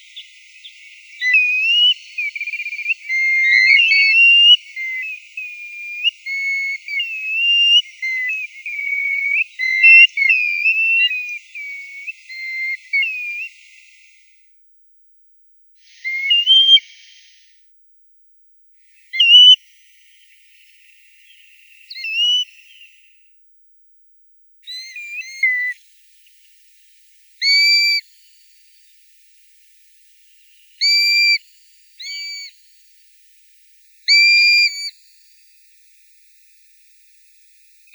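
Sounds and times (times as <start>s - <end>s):
grey plover calling: 0.1s - 13.6s, 19.2s - 19.6s, 21.3s - 23.0s, 24.7s - 25.7s, 27.4s - 28.0s, 30.8s - 31.4s, 32.0s - 32.5s, 34.1s - 34.9s.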